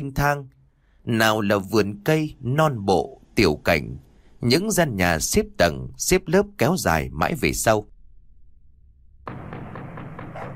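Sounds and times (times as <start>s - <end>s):
speech: 0.1s - 7.9s
pounding on a wooden gate: 9.3s - 10.5s
dog barking in the house: 10.2s - 10.5s.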